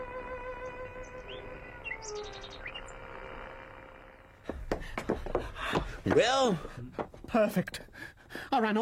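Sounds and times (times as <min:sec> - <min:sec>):
bird song played over radio: 0:01.0 - 0:03.0
speech: 0:02.0 - 0:02.7, 0:05.3 - 0:08.7.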